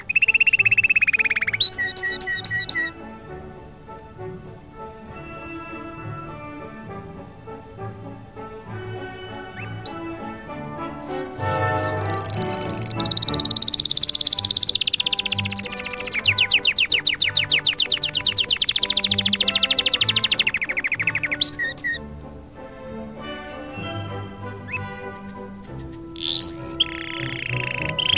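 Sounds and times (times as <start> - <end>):
Canary song: 0.0 - 28.1
background music with sustained low tones: 0.0 - 28.1.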